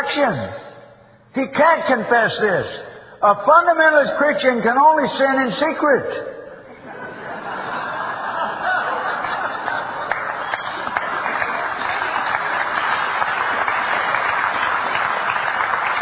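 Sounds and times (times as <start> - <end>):
speech: 0.1 - 0.7, 1.3 - 6.3
laughter: 6.7 - 12.6
half-hearted audience clapping: 8.8 - 16.0.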